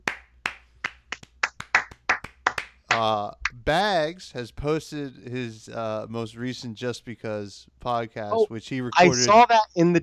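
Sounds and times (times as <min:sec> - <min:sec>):
round of applause: 0:00.0 - 0:03.2
speech: 0:03.0 - 0:10.0.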